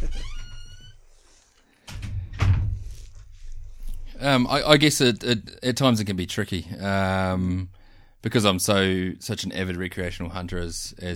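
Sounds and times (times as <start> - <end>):
squeaky door creaking open: 0.0 - 1.0
heavy thuds: 1.9 - 5.6
speech: 4.2 - 11.1.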